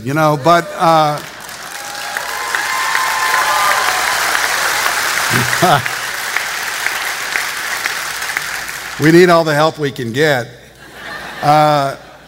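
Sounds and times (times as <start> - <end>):
speech: 0.0 - 1.3, 5.3 - 5.9, 9.0 - 10.6, 11.4 - 12.0
audience applause: 0.6 - 9.2
laughter: 5.2 - 6.2, 10.7 - 12.2.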